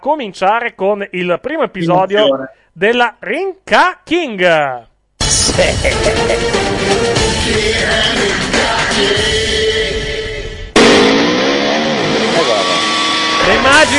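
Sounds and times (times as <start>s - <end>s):
speech: 0.0s - 9.4s, 13.6s - 13.9s
laughter: 5.3s - 7.0s
Tata truck engine revving: 10.7s - 13.9s.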